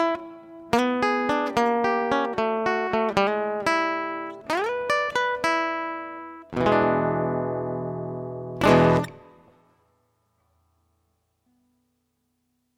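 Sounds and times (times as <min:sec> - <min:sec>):
acoustic blues music: 0:00.0 - 0:09.4.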